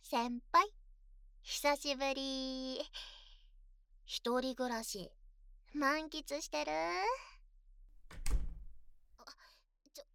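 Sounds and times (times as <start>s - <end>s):
speech: 0.1s - 0.7s, 1.4s - 3.2s, 4.1s - 7.3s
door being shut: 8.0s - 8.9s.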